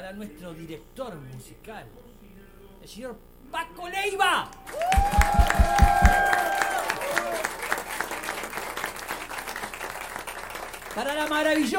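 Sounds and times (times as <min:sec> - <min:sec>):
speech: 0:00.1 - 0:02.1, 0:02.8 - 0:06.2, 0:11.0 - 0:11.7
audience applause: 0:04.7 - 0:11.7.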